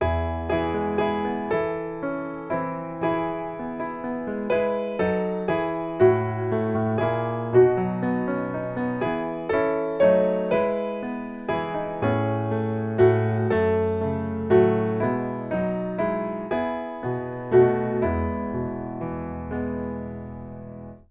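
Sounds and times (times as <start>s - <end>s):
piano: 0.0s - 21.0s.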